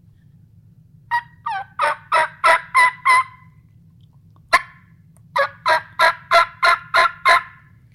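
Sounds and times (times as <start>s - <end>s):
low constant hum: 0.0s - 7.9s
turkey yelps blown on a mouth call: 1.1s - 3.5s, 4.5s - 7.7s.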